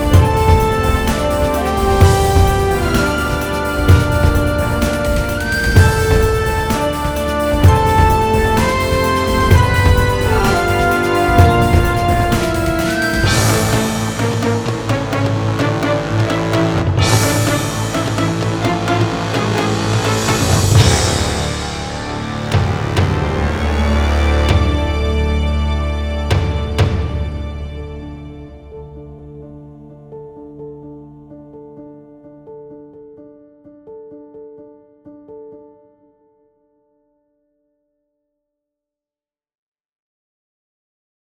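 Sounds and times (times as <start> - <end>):
orchestral music: 0.0 - 31.3.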